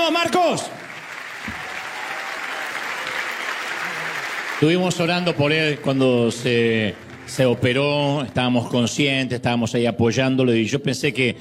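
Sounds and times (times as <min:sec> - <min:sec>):
audience applause: 0:00.0 - 0:08.6
speech: 0:00.2 - 0:00.8, 0:04.6 - 0:11.4.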